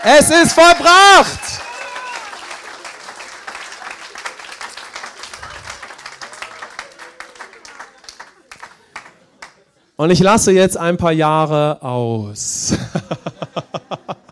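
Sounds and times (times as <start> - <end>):
speech: 0.0 - 1.6, 10.0 - 14.0
audience applause: 0.0 - 9.6
laughter: 12.6 - 14.3.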